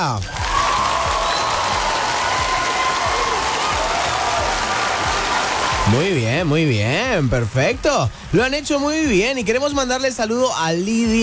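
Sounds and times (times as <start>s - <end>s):
speech: 0.0s - 0.4s, 5.9s - 11.2s
audience applause: 0.2s - 6.8s.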